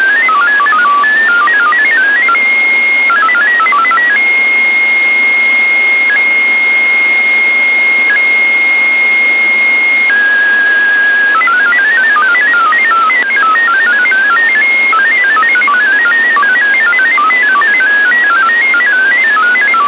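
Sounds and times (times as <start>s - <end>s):
MFSK radio data tones: 0.0s - 19.8s.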